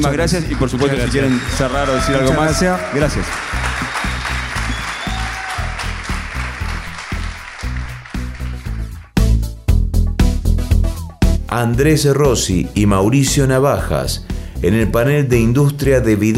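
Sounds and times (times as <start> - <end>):
speech: 0.0 - 3.5, 11.5 - 16.3
audience applause: 0.0 - 9.1
loud rhythmic music with a steady bass beat: 0.0 - 16.3.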